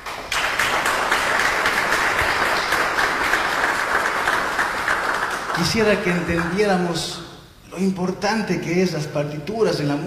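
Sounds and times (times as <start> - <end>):
applause: 0.0 - 6.9
speech: 5.6 - 7.2, 7.8 - 10.0.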